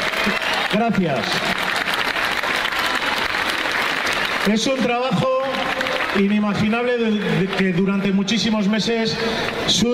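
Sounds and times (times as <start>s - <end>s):
audience applause: 0.0s - 6.5s
speech: 0.8s - 1.5s, 4.4s - 5.4s, 6.1s - 9.9s.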